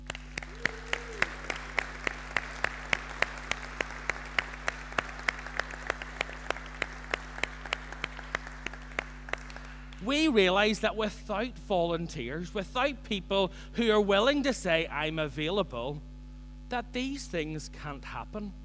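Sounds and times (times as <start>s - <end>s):
audience applause for volunteers: 0.0s - 11.1s
laughter: 0.0s - 16.0s
speech: 10.1s - 16.1s, 16.7s - 18.6s.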